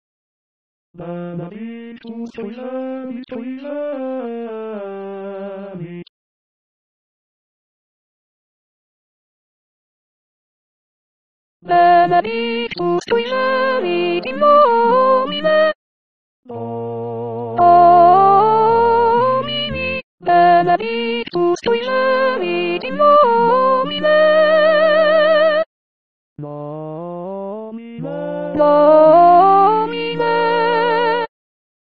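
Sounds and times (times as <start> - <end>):
soprano singing: 11.7 - 15.8, 16.5 - 25.7, 28.0 - 31.3.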